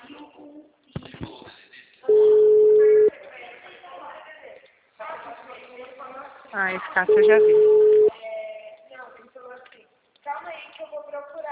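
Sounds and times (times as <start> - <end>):
telephone dialing tone while calling someone again: 2.1 - 3.1, 7.1 - 8.1
speech: 6.7 - 7.8.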